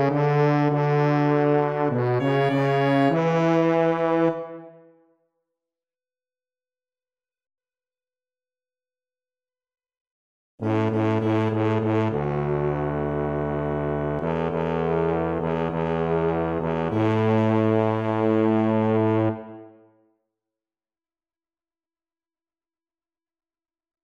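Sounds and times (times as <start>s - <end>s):
tuba: 0.0s - 4.9s, 10.6s - 19.9s.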